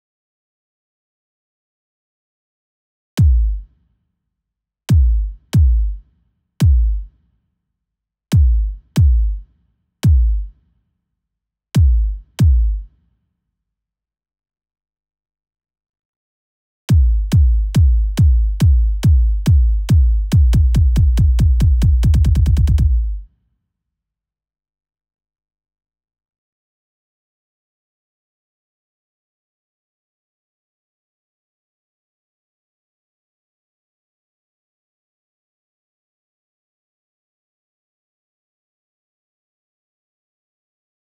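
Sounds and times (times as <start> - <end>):
140 BPM breakbeat bass drum: 3.2 - 3.7, 4.9 - 6.0, 6.6 - 7.1, 8.4 - 9.4, 10.0 - 10.5, 11.8 - 12.9, 16.9 - 23.2.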